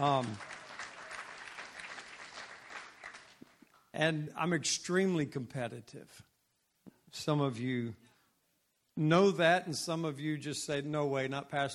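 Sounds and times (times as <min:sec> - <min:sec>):
speech: 0:00.0 - 0:00.5, 0:04.0 - 0:06.3, 0:07.1 - 0:08.1, 0:09.0 - 0:11.7
audience applause: 0:00.0 - 0:03.6.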